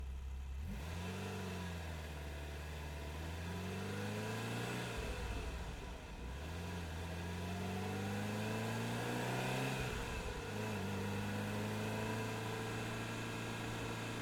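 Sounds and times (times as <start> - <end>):
1985 Ferrari 308GTB engine recorded onboard while driving: 0.0 - 14.2.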